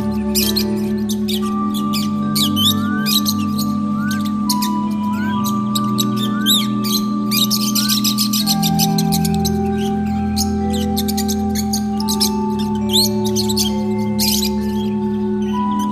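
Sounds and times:
lovebirds chattering: 0.0s - 15.9s
steady low humming drone: 0.0s - 15.9s.

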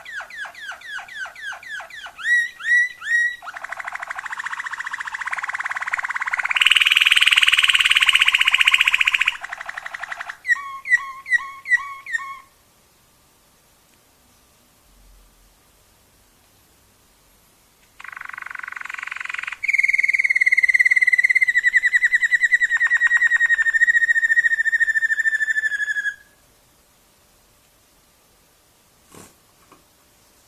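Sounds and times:
Waterslager canary rolling trills: 0.0s - 12.5s, 18.0s - 26.3s.

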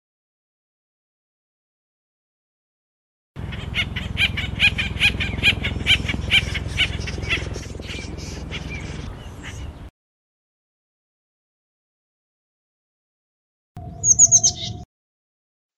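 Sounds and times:
Acorn woodpecker calling in harsh repeated notes: 3.4s - 9.8s, 13.8s - 14.8s.

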